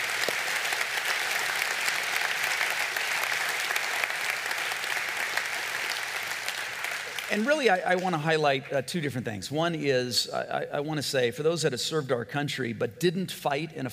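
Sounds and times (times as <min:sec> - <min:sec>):
crowd applause: 0:00.0 - 0:08.2
speech: 0:07.3 - 0:13.9.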